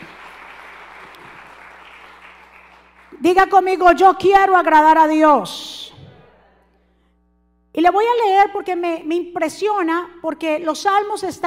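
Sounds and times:
loud audience applause: 0.0 - 3.2
speech: 3.2 - 5.8, 7.8 - 11.4.

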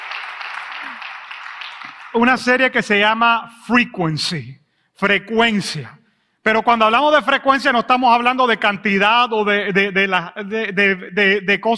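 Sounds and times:
audience applause: 0.0 - 2.2
speech: 0.8 - 1.1, 2.1 - 11.7.

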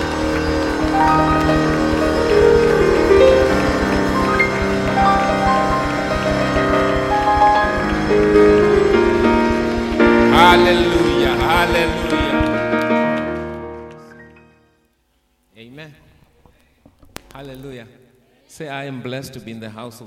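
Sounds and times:
audience clapping hands: 0.0 - 14.3
speech: 18.6 - 20.0.

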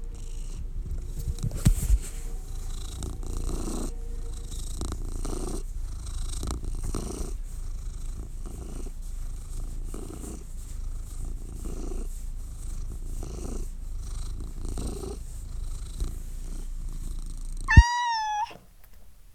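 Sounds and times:
kitten purring: 0.0 - 18.4
kitten meowing: 17.7 - 18.6.

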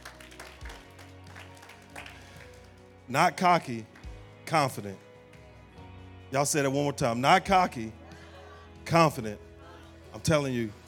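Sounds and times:
audience clapping in praise: 0.0 - 3.1, 3.8 - 4.2
speech: 3.1 - 3.9, 4.5 - 5.1, 6.3 - 8.0, 8.9 - 9.5, 10.1 - 10.8.

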